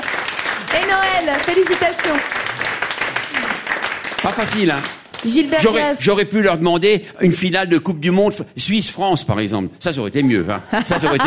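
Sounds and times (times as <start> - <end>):
crowd applauding: 0.0 - 6.0
speech: 0.8 - 2.7, 4.2 - 11.2
laughter: 10.4 - 11.2.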